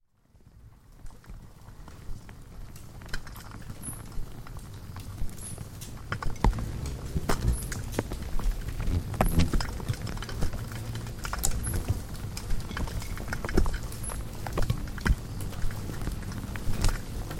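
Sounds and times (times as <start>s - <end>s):
insect swarm tapping and clicking at a light: 1.1s - 17.3s
low drone: 6.4s - 11.6s.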